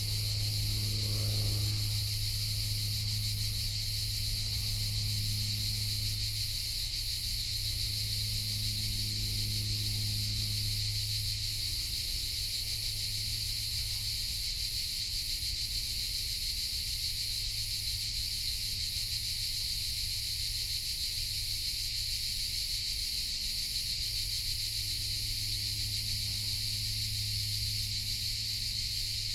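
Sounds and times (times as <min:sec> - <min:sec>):
cicada buzzing: 0:00.0 - 0:15.7, 0:22.8 - 0:29.3
crickets chorus: 0:00.0 - 0:29.3.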